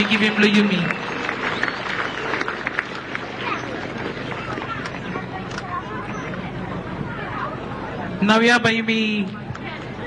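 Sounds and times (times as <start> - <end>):
speech: 0.0 - 1.1, 8.2 - 9.4
round of applause: 0.0 - 5.1.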